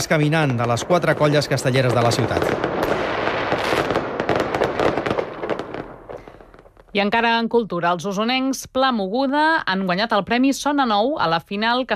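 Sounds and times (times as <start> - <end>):
speech: 0.0 - 3.1, 6.9 - 11.9
fireworks display crackling and popping at the Punta del Miracle: 0.0 - 7.4.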